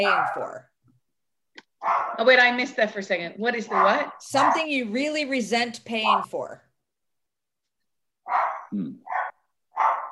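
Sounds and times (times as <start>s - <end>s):
speech: 0.0s - 0.7s, 1.8s - 6.7s, 8.3s - 9.2s
dogs barking in the backyard: 1.8s - 2.3s, 3.6s - 4.8s, 8.2s - 10.0s.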